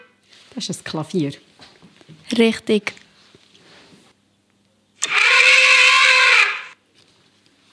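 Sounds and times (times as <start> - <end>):
speech: 0.7 - 1.5, 2.3 - 3.0
elephant trumpeting: 5.0 - 6.8.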